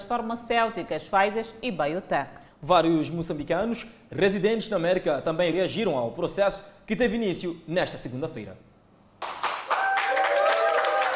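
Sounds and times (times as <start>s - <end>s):
speech: 0.1s - 8.7s
round of applause: 9.2s - 11.1s.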